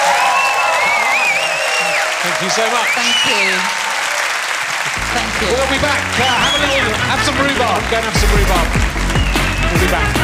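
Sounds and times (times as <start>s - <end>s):
whistles and cheers: 0.0s - 4.4s, 6.2s - 7.0s, 8.8s - 10.2s
crowd applauding: 0.0s - 10.2s
speech: 2.2s - 3.8s, 5.2s - 9.0s, 9.7s - 10.2s.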